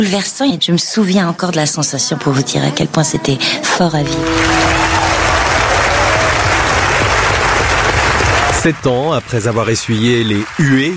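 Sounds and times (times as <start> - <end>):
speech: 0.0 - 5.2, 8.6 - 10.9
large audience applause: 3.9 - 10.9.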